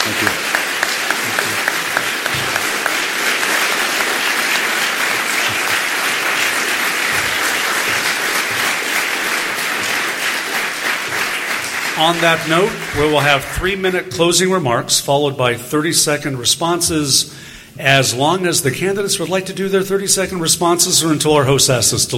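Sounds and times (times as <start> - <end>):
audience applause: 0.0 - 14.0
speech: 12.0 - 22.1.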